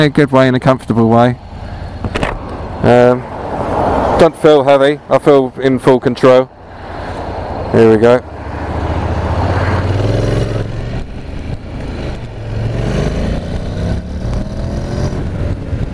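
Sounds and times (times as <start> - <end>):
speech: 0.0 - 1.5, 2.8 - 3.4, 4.2 - 6.6, 7.7 - 8.4
2019 Honda NC750X motorcycle pulling away and accelerating: 1.4 - 4.5, 6.8 - 15.9.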